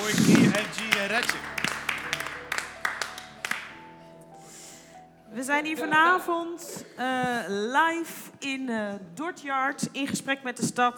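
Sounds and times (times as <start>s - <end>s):
voiced cheer: 0.0s - 3.8s
laughter: 0.0s - 4.0s, 5.6s - 7.2s
audience applause: 0.0s - 4.2s
speech: 0.3s - 1.6s, 5.5s - 10.9s.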